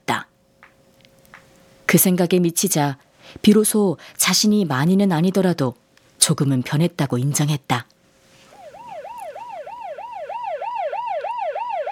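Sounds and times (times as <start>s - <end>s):
speech: 1.9s - 8.0s
ambulance siren wailing: 8.6s - 11.9s.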